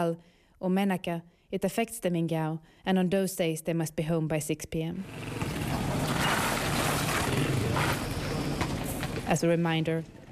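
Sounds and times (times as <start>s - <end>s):
speech: 0.0s - 5.7s, 9.3s - 10.2s
French army vehicle passing on a road in Gao, Mali: 5.0s - 9.4s.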